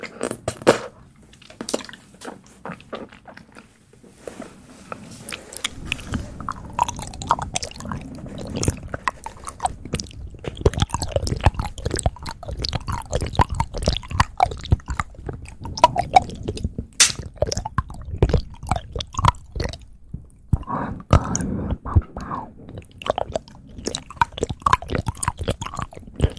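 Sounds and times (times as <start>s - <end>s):
chewing: 1.3s - 26.3s
wet mouth sounds: 5.3s - 26.3s.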